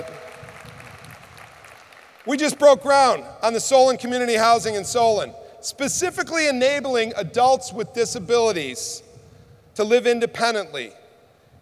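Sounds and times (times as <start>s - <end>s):
audience applause: 0.0s - 2.3s
speech: 2.3s - 9.1s, 9.8s - 11.0s.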